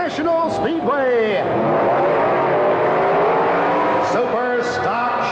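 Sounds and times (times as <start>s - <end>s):
speech: 0.1s - 1.9s
nitromethane-burning Dodge and Chevrolet funny car drag racing engines revving: 1.4s - 5.3s.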